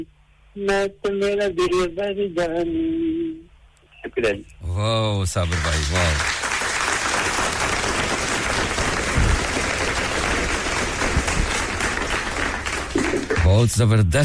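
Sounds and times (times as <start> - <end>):
speech: 0.0 - 3.4, 4.0 - 6.5, 13.5 - 14.2
audience applause: 5.4 - 13.7.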